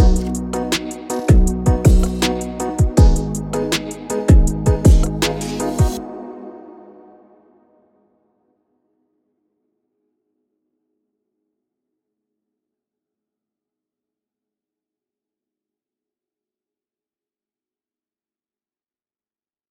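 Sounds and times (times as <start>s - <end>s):
urban music bed in C minor at 160 BPM: 0.0s - 6.9s.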